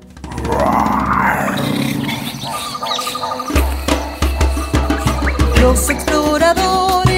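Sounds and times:
lion low rumbling growls: 0:00.2 - 0:03.4
lion roaring: 0:00.2 - 0:05.9
speech: 0:05.6 - 0:07.0.

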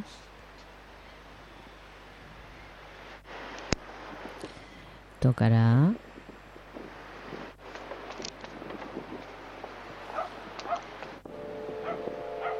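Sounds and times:
speech: 0:05.2 - 0:06.0
dogs barking on the San Lorenzo beach: 0:10.1 - 0:11.0, 0:11.7 - 0:12.5.

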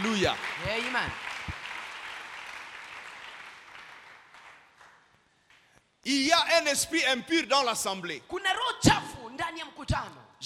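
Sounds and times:
church congregation clapping: 0:00.0 - 0:05.8
speech: 0:00.1 - 0:01.3, 0:06.0 - 0:10.4.

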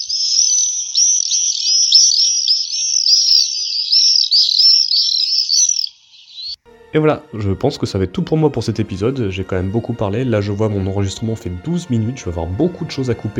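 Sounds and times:
common swifts screaming calls: 0:00.0 - 0:06.6
speech: 0:06.9 - 0:13.3.

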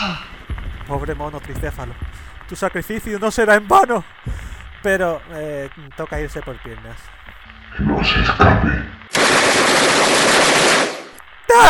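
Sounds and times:
speech: 0:00.0 - 0:00.3, 0:00.9 - 0:09.4
rapid gunfire: 0:09.1 - 0:11.2.

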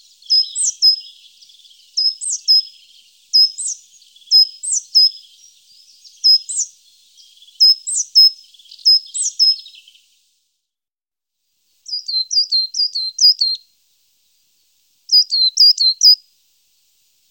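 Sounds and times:
coal tit singing: 0:00.0 - 0:10.1, 0:11.8 - 0:13.6, 0:15.1 - 0:16.2.

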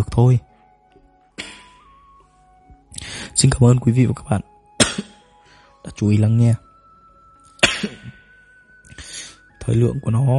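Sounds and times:
speech: 0:00.0 - 0:00.5, 0:03.4 - 0:05.1, 0:06.0 - 0:06.6, 0:09.6 - 0:10.3
cough: 0:01.4 - 0:01.8, 0:04.8 - 0:05.2, 0:07.6 - 0:08.2.

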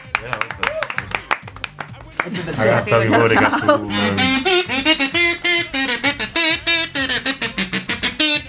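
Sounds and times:
applause: 0:00.0 - 0:02.4
laughter: 0:02.1 - 0:08.3
speech: 0:02.2 - 0:05.2.

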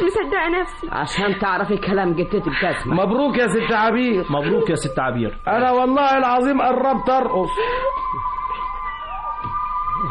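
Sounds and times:
speech: 0:00.2 - 0:08.1
crowd of neighbours cheering and shouting outside in a radio drama: 0:05.6 - 0:10.0.

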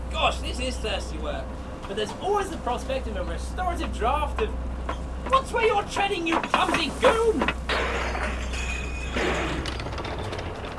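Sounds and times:
speech: 0:00.2 - 0:07.6
bag of spanners crashing and clattering on the ground: 0:07.7 - 0:10.7.

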